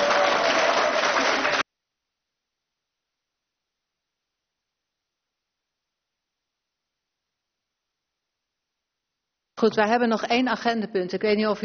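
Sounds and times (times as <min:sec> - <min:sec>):
applause from a group: 0:00.0 - 0:01.6
speech: 0:09.6 - 0:11.6.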